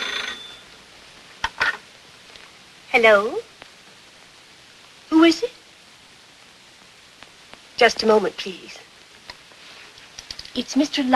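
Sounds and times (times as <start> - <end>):
telephone ringing: 0.0 - 0.7
speech: 3.0 - 3.5, 5.2 - 5.5, 7.8 - 8.9, 10.6 - 11.1.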